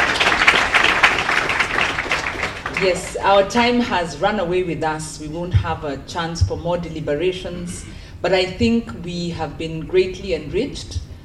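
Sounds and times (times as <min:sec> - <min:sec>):
crowd applause for a discussion panel: 0:00.0 - 0:03.0
speech: 0:02.8 - 0:11.1.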